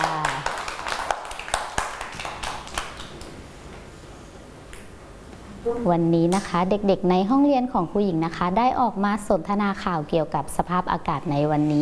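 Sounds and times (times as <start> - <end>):
children clapping: 0.0 - 3.4
speech: 5.7 - 11.8.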